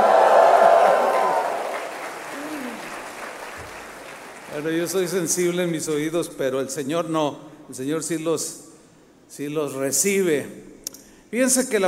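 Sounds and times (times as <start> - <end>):
audience shouting praise: 0.0 - 2.8
scattered clapping: 0.6 - 5.0
speech: 4.6 - 8.6, 9.3 - 10.7, 11.3 - 11.8.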